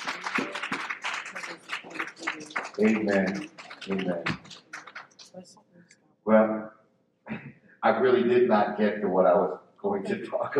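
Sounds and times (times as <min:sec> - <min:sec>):
laughter: 0:00.0 - 0:04.4, 0:07.3 - 0:10.5
church congregation applauding in praise of the Lord: 0:00.0 - 0:05.4
congregation voices calling out: 0:00.0 - 0:05.5, 0:07.3 - 0:10.5
speech: 0:02.8 - 0:04.4, 0:07.8 - 0:10.5.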